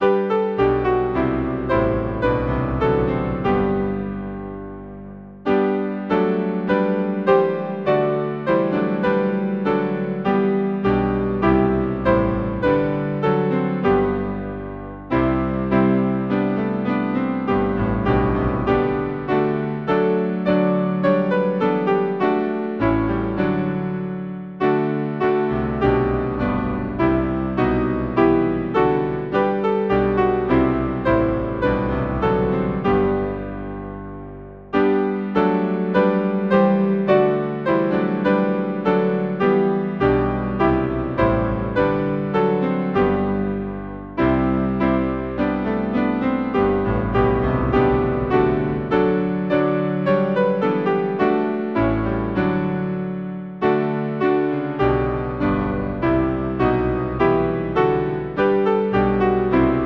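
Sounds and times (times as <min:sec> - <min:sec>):
hymn on piano: 0:00.0 - 0:59.8.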